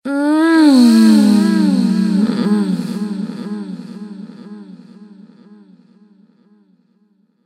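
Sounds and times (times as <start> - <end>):
woman groaning during sex with delay effect: 0.1 - 5.6.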